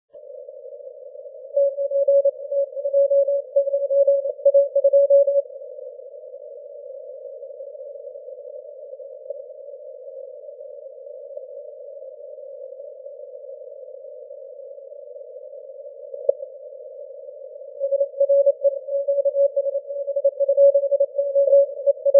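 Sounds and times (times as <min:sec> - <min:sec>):
15m band CW morse code: 0:01.6 - 0:05.4, 0:17.9 - 0:22.1.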